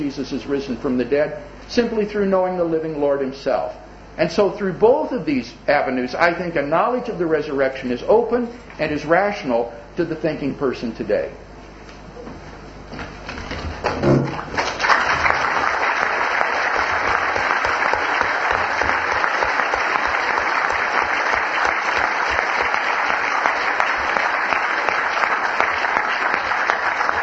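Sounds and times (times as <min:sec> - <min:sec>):
speech: 0:00.0 - 0:11.4
audience applause: 0:13.8 - 0:27.2.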